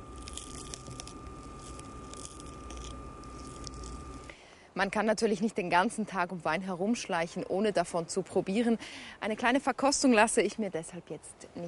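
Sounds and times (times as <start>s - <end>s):
Roman snails smacking while eating: 0.0s - 4.4s
faint hum: 0.0s - 10.1s
speech: 4.8s - 11.6s.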